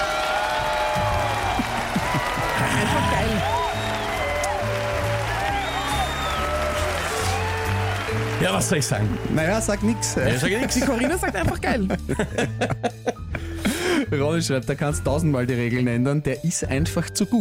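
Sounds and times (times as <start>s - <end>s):
whoops and shouts: 0.0s - 8.0s
crowd cheering and clapping: 0.0s - 11.2s
laughter: 1.2s - 3.7s, 10.2s - 14.0s
speech: 8.5s - 13.2s, 14.1s - 17.4s.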